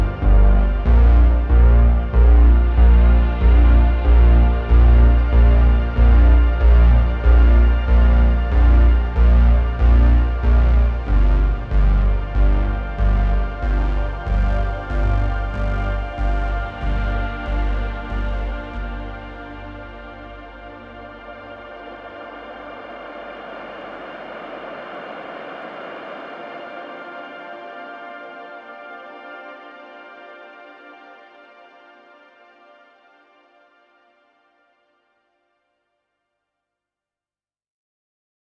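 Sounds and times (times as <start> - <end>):
solo bass: 0.0 - 22.4.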